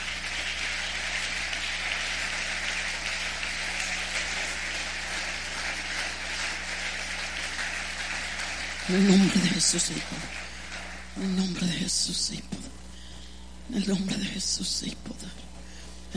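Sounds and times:
audience applause: 0:00.0 - 0:11.8
speech: 0:08.9 - 0:10.5, 0:11.2 - 0:12.7, 0:13.7 - 0:15.5.

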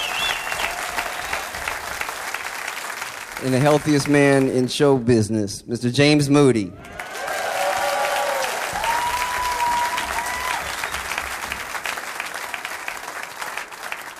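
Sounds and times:
faint whistles: 0:00.0 - 0:00.7
crowd applauding: 0:00.0 - 0:04.6, 0:06.8 - 0:14.1
speech: 0:03.4 - 0:07.0.

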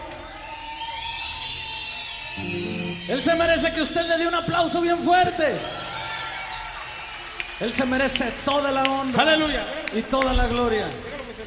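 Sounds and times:
audience whistling: 0:00.2 - 0:09.0
crowd murmur: 0:02.4 - 0:03.4
speech: 0:02.4 - 0:05.9, 0:07.6 - 0:11.1.

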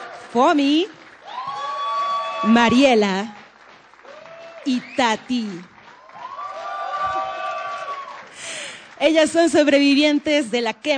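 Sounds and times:
audience cheering: 0:00.0 - 0:00.4, 0:01.2 - 0:03.4, 0:04.0 - 0:08.4
audience applause: 0:00.0 - 0:09.4
speech: 0:00.3 - 0:01.0, 0:02.4 - 0:03.4, 0:04.6 - 0:05.7, 0:09.0 - 0:10.9.

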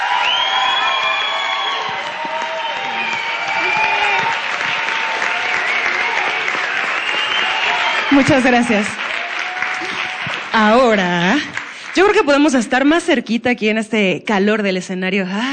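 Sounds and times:
live audience applause and cheering: 0:00.0 - 0:12.6
speech: 0:08.1 - 0:09.0, 0:10.6 - 0:15.5.

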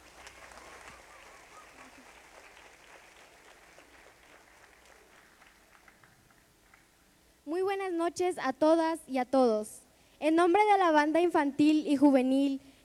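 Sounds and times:
audience applause at a concert: 0:00.0 - 0:06.9
speech: 0:07.8 - 0:12.7.

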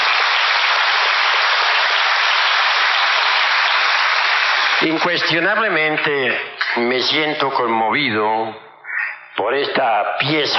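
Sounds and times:
audience applause: 0:00.0 - 0:06.4
speech: 0:04.8 - 0:08.6, 0:09.4 - 0:10.5.

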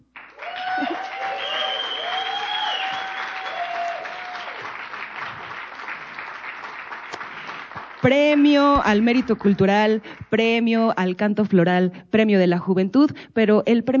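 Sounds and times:
audience applause: 0:00.1 - 0:10.1
speech: 0:08.0 - 0:13.9.

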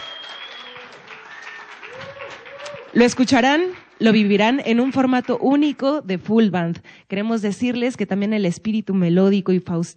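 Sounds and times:
audience applause: 0:00.0 - 0:05.7
speech: 0:02.9 - 0:09.9.

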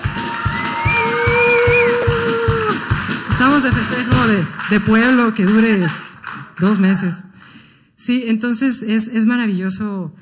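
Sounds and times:
audience applause: 0:00.0 - 0:07.2
speech: 0:03.6 - 0:07.3, 0:08.0 - 0:10.2.

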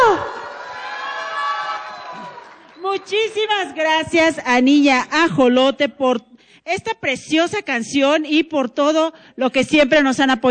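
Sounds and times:
crowd cheering and applauding: 0:00.0 - 0:03.1
speech: 0:02.9 - 0:10.4.

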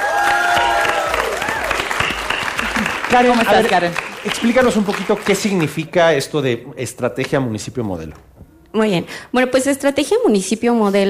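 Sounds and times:
studio audience applause on a Mexican science program: 0:00.0 - 0:06.1
speech: 0:03.1 - 0:11.0.

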